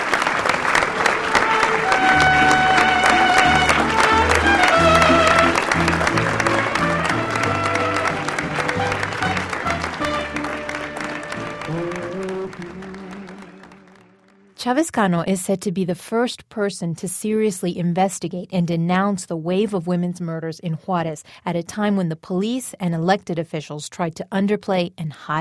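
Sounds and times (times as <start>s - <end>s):
crowd applause at a memorial service: 0.0s - 14.6s
mariachi music with trumpet, strings and bass: 0.0s - 14.7s
speech: 14.7s - 25.4s.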